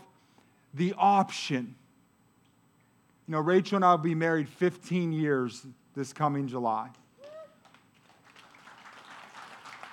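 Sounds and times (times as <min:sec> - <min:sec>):
speech: 0:00.7 - 0:01.8, 0:03.3 - 0:07.0
audience clapping: 0:07.2 - 0:09.9.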